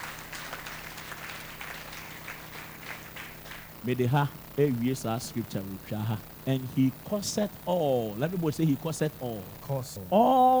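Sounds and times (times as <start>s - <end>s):
audience clapping: 0.0s - 3.9s
speech: 3.8s - 10.5s.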